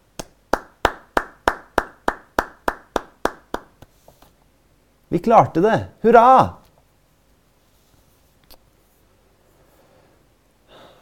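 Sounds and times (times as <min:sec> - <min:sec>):
polite golf-style hand clapping: 0:00.1 - 0:03.9
speech: 0:05.1 - 0:06.6.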